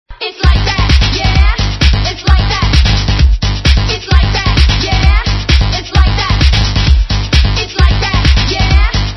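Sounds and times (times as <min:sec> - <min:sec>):
electro music: 0:00.2 - 0:09.1.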